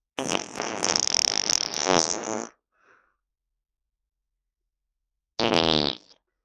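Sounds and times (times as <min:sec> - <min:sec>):
farts: 0:00.2 - 0:02.6, 0:05.4 - 0:06.2.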